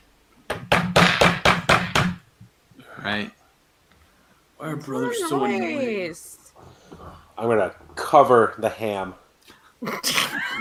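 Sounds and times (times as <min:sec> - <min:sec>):
knocking on a door: 0:00.5 - 0:02.2
speech: 0:03.0 - 0:03.4, 0:04.6 - 0:06.4, 0:07.4 - 0:09.2, 0:09.8 - 0:10.5.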